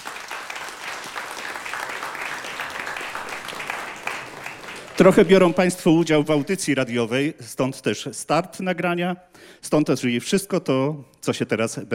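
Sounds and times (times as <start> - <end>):
concert audience applauding: 0.0 - 6.5
speech: 5.0 - 11.9.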